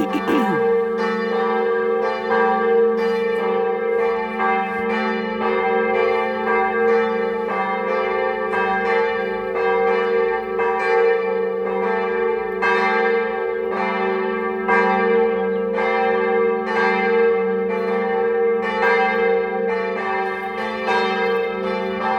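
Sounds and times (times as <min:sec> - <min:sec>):
church bells ringing a Sunday call: 0:00.2 - 0:22.1.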